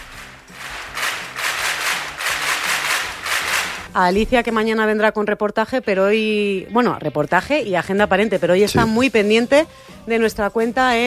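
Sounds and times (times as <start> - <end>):
applause: 0.0 - 3.9
speech: 4.0 - 11.0.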